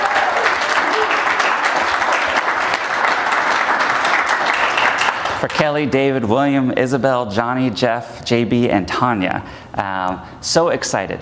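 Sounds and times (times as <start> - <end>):
audience applause: 0.0 - 5.6
speech: 5.4 - 11.2.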